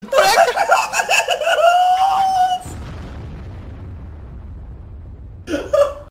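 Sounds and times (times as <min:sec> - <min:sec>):
person laughing: 0:00.0 - 0:02.7, 0:05.5 - 0:06.0.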